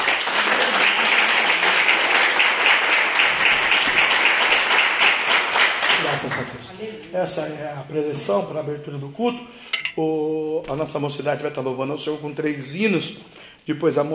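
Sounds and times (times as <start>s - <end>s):
audience applause: 0.0s - 6.6s
speech: 7.1s - 14.1s.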